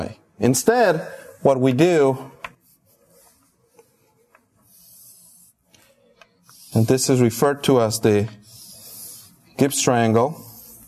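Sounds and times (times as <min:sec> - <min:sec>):
speech: 0:00.0 - 0:02.4, 0:06.8 - 0:08.5, 0:09.6 - 0:10.5
marker or chalk scratching on a board drawing an equilateral triangle: 0:02.4 - 0:10.8.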